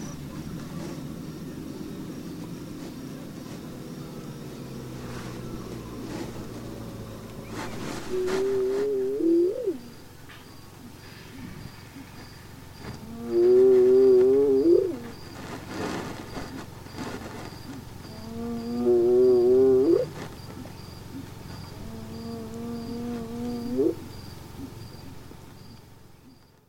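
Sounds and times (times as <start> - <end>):
insects chirping: 0.0 - 26.6
hyena whooping: 4.8 - 10.2, 13.0 - 15.2, 18.0 - 20.2, 21.7 - 24.1
speech: 8.1 - 8.5.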